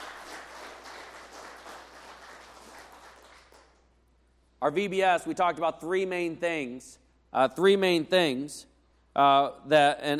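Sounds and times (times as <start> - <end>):
audience applause: 0.0 - 3.8
speech: 4.6 - 10.1.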